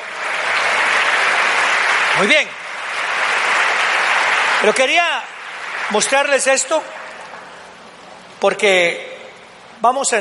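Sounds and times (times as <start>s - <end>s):
audience applauding loudly: 0.0s - 7.8s
speech: 2.2s - 2.6s, 4.6s - 5.3s, 5.9s - 7.0s, 8.4s - 9.1s, 9.8s - 10.1s.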